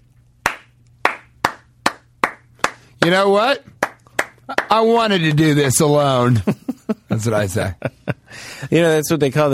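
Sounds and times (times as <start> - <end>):
single person slow clapping: 0.4 - 3.1, 3.8 - 4.8
speech: 3.0 - 3.7, 4.5 - 8.0, 8.6 - 9.5.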